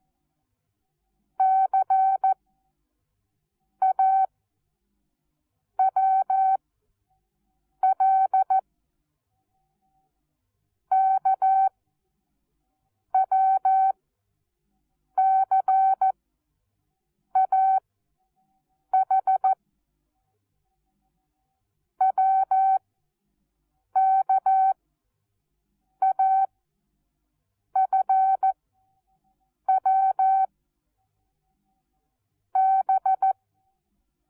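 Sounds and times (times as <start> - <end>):
morse code beeps: 1.4 - 2.4, 3.8 - 4.3, 5.8 - 6.6, 10.9 - 11.7, 13.1 - 13.9, 15.2 - 16.1, 17.4 - 17.8, 18.9 - 19.5, 22.0 - 22.8, 24.0 - 24.7, 26.0 - 26.5, 27.8 - 28.5, 29.7 - 30.5, 32.6 - 33.3.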